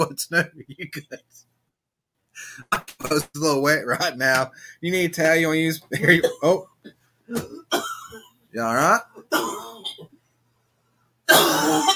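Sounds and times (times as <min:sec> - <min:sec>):
speech: 0:00.0 - 0:01.5, 0:02.4 - 0:10.1, 0:11.3 - 0:11.9
coughing after swallowing down the wrong way: 0:06.0 - 0:08.4, 0:09.0 - 0:10.2, 0:11.3 - 0:11.9.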